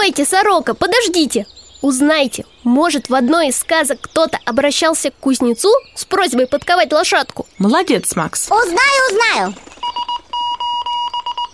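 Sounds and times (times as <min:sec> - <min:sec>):
speech: 0:00.1 - 0:09.7
distress signal electronic alarm beeping: 0:09.8 - 0:11.5.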